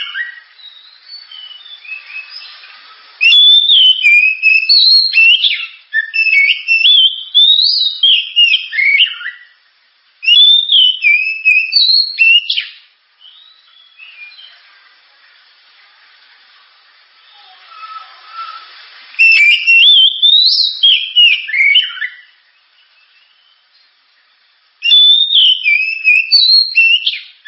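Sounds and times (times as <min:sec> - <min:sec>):
oriental magpie-robin whistled song: 0:00.0 - 0:09.6, 0:10.2 - 0:14.6, 0:17.2 - 0:23.9, 0:24.8 - 0:27.4
faint hiss: 0:00.0 - 0:27.4.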